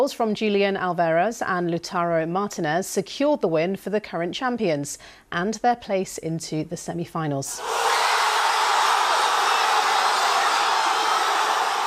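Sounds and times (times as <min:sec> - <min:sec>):
speech: 0:00.0 - 0:08.0
fans cheering at the final whistle in Buenos Aires: 0:07.6 - 0:11.8.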